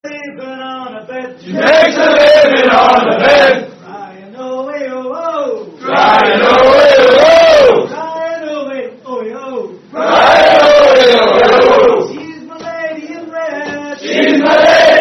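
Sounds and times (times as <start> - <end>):
British pub sing-along: 1.4 - 3.8, 5.8 - 7.9, 9.9 - 12.2, 13.7 - 15.0.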